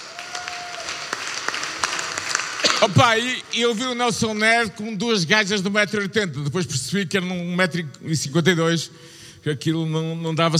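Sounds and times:
comedy roast show audience clapping: 0.0s - 4.6s
speech: 2.8s - 10.5s.

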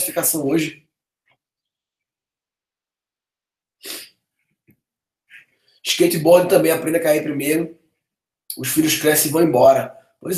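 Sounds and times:
speech: 0.1s - 0.8s, 5.8s - 7.8s, 8.6s - 10.3s
sneeze: 3.8s - 4.2s.

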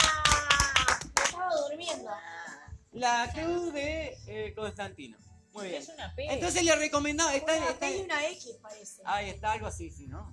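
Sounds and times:
hand claps for a child who found the answer: 0.0s - 2.1s
speech: 3.0s - 10.3s.

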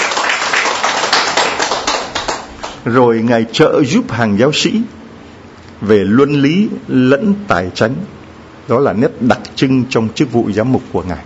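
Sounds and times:
congregation clapping during a Catholic homily: 0.0s - 2.8s
speech: 2.8s - 5.0s, 5.8s - 11.2s.

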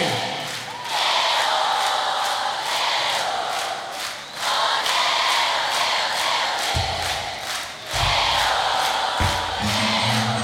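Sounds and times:
crowd cheering at a live cumbia concert: 0.0s - 10.4s
low thumps: 6.8s - 10.4s.

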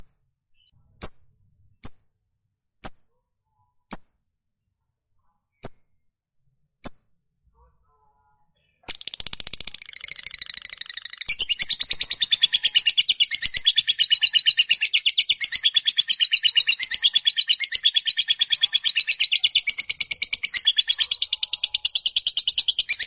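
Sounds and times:
lovebird chattering: 8.9s - 23.0s.

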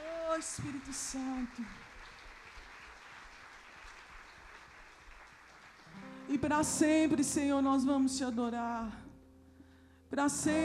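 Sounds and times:
audience applauding: 0.3s - 6.2s
speech: 0.4s - 1.9s, 6.3s - 9.0s, 10.1s - 10.6s.

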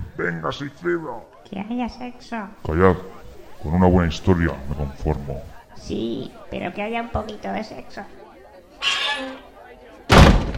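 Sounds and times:
speech: 0.2s - 8.2s
door slamming shut: 10.1s - 10.5s.

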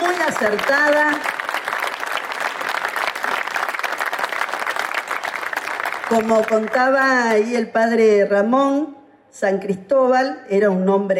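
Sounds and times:
audience applause at an inauguration ceremony: 0.0s - 7.0s
speech: 0.4s - 1.4s, 6.1s - 11.1s.

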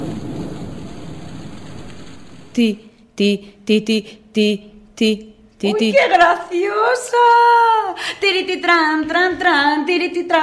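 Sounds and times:
steady rain: 0.0s - 2.6s
speech: 2.6s - 10.4s.

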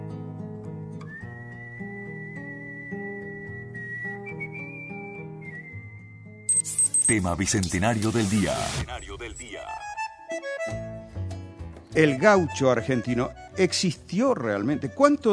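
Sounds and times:
sad melancholy human whistling: 1.0s - 7.1s
speech: 7.1s - 9.4s, 11.9s - 15.3s.

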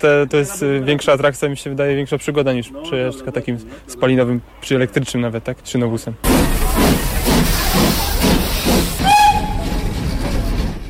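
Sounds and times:
speech: 0.0s - 6.6s
steam locomotive chuffing: 6.2s - 10.8s
shrill steam locomotive whistle blast: 6.4s - 10.2s.

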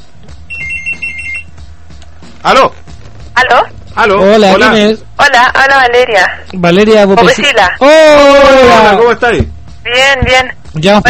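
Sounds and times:
low steady hum: 0.0s - 11.0s
telephone ringing with an incoming call: 0.5s - 1.5s
speech: 2.4s - 2.8s, 3.4s - 11.0s.

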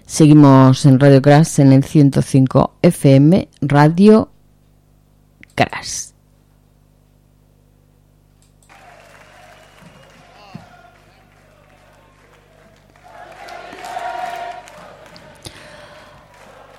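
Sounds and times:
speech: 0.1s - 4.3s, 5.6s - 6.1s
faint applause from a group: 8.7s - 16.7s.

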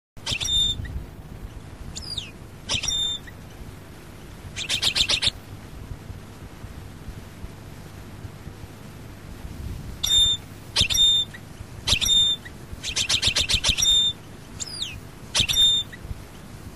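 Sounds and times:
European goldfinch twittering: 0.2s - 1.0s, 1.9s - 3.4s, 4.5s - 5.4s, 10.0s - 16.1s.

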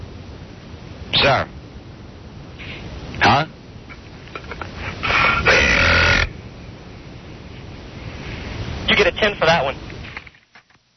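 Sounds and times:
speech: 1.2s - 1.6s, 3.2s - 3.6s, 9.1s - 9.9s
loud burp: 5.1s - 6.3s.

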